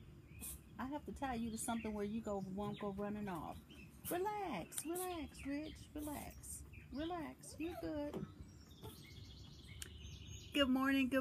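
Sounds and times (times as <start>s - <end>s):
birds singing in the morning: 0.0s - 11.1s
speech: 0.4s - 9.0s, 10.6s - 11.1s.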